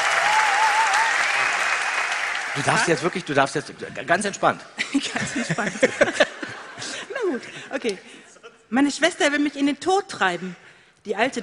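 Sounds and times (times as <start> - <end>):
audience applause: 0.0 - 3.4
speech: 2.6 - 6.3, 7.3 - 11.4
laughter: 4.8 - 7.7.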